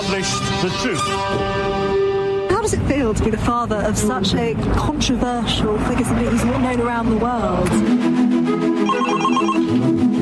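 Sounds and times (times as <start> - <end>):
speech: 0.1 - 1.9, 2.6 - 9.9
telephone ringing: 8.8 - 9.7.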